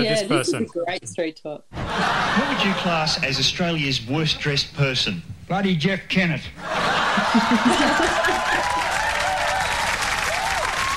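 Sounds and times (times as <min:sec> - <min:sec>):
speech: 0:00.0 - 0:08.8
laughter: 0:01.8 - 0:03.2, 0:06.6 - 0:08.9
cheering: 0:06.6 - 0:10.9
wild crowd applause: 0:06.6 - 0:10.9.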